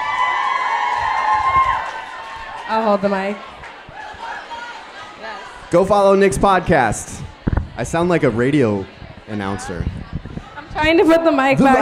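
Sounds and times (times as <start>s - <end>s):
audience applause: 0.0s - 5.6s
audience cheering: 0.0s - 6.8s
speech: 2.7s - 3.6s, 5.7s - 7.2s, 7.8s - 10.1s, 10.8s - 11.7s.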